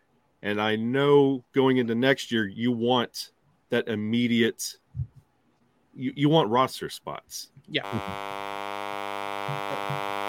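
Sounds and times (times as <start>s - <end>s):
speech: 0.4s - 5.1s, 6.0s - 8.6s, 9.5s - 10.0s
phone buzzing with a notification: 7.8s - 10.2s.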